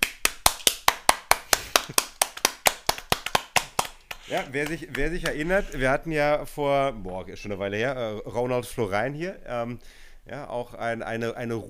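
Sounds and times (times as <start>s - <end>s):
hand claps: 0.0s - 5.7s
speech: 4.3s - 11.6s.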